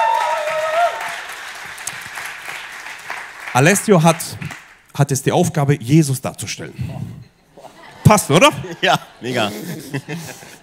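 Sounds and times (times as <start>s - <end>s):
audience applause: 0.0s - 4.8s
speech: 3.6s - 7.3s, 8.1s - 10.6s
laughter: 7.6s - 10.6s.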